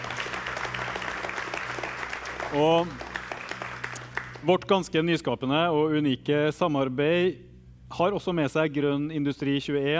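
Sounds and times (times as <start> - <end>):
audience applause: 0.0 - 4.5
speech: 2.5 - 3.0, 4.4 - 9.9.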